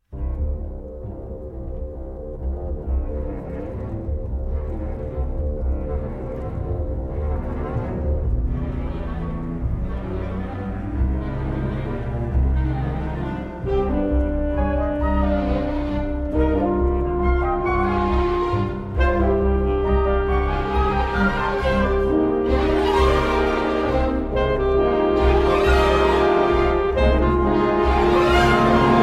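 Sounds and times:
orchestra: 0:00.0 - 0:29.0
alto saxophone: 0:06.4 - 0:29.0.

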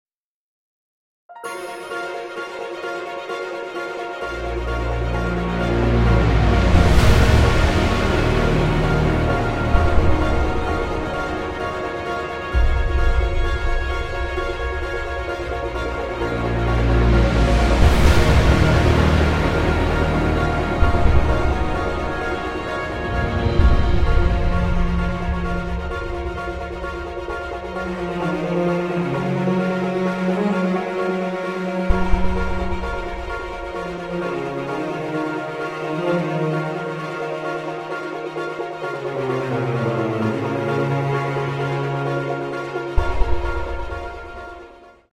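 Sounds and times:
solo music: 0:01.3 - 0:45.1.

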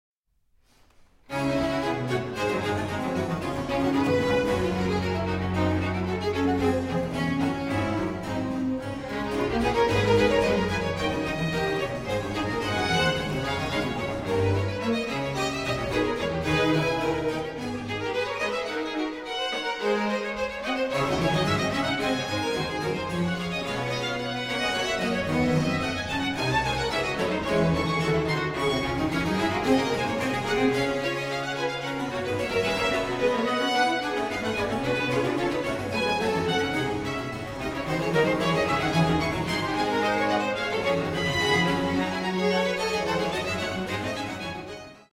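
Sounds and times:
fast violin duet: 0:00.7 - 0:45.1.

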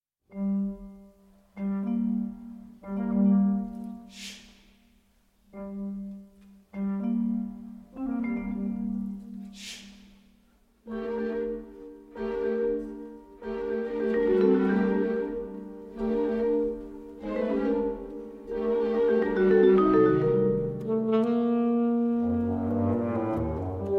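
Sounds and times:
orchestra: 0:00.3 - 0:23.9
alto saxophone: 0:10.9 - 0:23.9.

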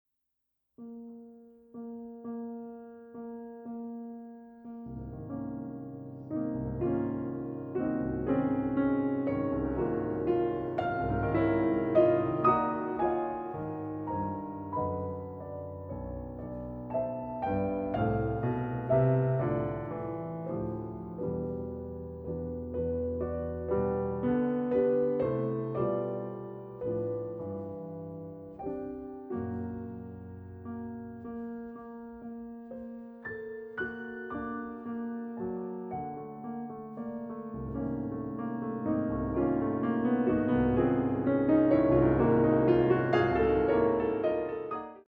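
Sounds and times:
dance piece for piano: 0:00.8 - 0:45.0.

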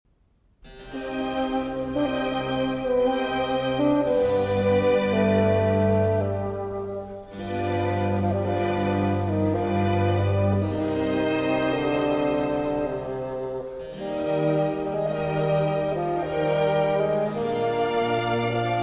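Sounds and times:
bassoon concerto in C minor: 0:00.7 - 0:18.8.

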